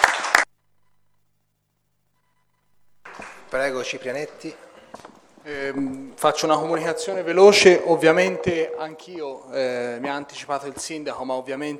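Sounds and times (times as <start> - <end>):
applause in council chamber: 0.0 - 0.5, 3.1 - 4.6
speech: 3.5 - 11.7.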